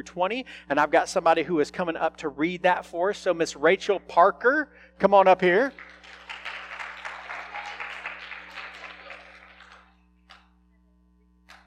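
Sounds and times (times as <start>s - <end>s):
speech: 0.0s - 6.2s
crowd clapping: 5.6s - 10.5s.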